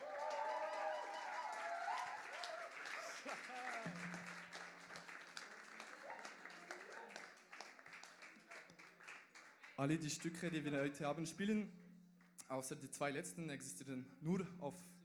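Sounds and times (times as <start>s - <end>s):
concert audience cheering and whooping: 0.0s - 4.0s, 5.5s - 7.2s
concert audience applauding for the band: 0.0s - 10.6s
speech: 9.8s - 11.8s, 12.5s - 15.0s.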